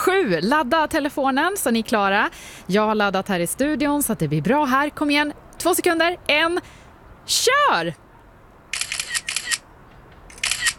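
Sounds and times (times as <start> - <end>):
speech: 0.2 - 8.0
camera shutter clicks taking photos: 8.7 - 9.6, 10.3 - 10.7.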